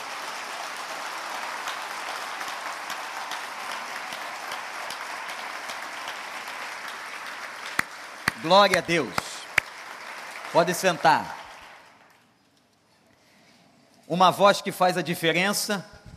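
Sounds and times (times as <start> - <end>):
audience applause: 0.0 - 12.3
speech: 8.4 - 9.2, 10.5 - 11.4, 14.1 - 16.0.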